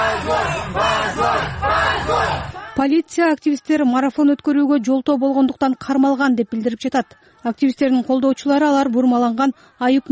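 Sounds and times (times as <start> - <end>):
supporters in a courtroom shouting shame after a verdict: 0.0 - 3.0
speech: 2.8 - 10.1.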